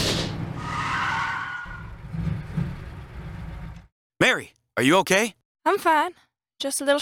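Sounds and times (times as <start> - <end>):
car tires skidding after running over something sharp: 0.2 - 3.7
speech: 4.2 - 7.0.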